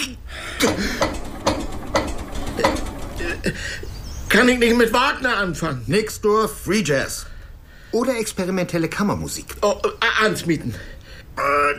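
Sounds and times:
speech: 0.6s - 1.2s, 3.4s - 7.3s, 7.9s - 11.7s
engine being cranked to start without catching: 0.6s - 4.0s.

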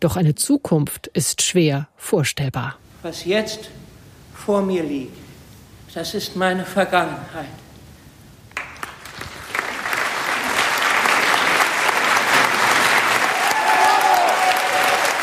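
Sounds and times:
speech: 0.0s - 3.8s, 4.4s - 5.2s, 6.0s - 7.6s
theatre audience applause: 8.6s - 15.2s.

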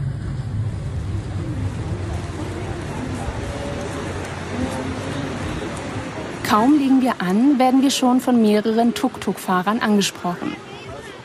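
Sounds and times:
wind noise: 0.0s - 7.6s
ferry engine rumble: 0.0s - 11.2s
rushing water: 0.0s - 11.2s
speech: 6.5s - 10.7s.

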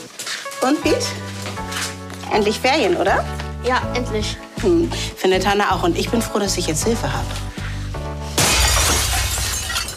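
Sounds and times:
speech: 0.6s - 1.4s, 2.3s - 7.5s
stone smashing through a glass window pane into a practice: 8.4s - 9.9s.

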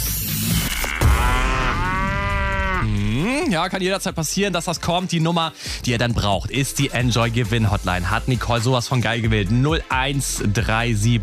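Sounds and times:
cow moo sound effect used as a radio station jingle: 0.5s - 3.5s
speech: 3.5s - 11.2s.

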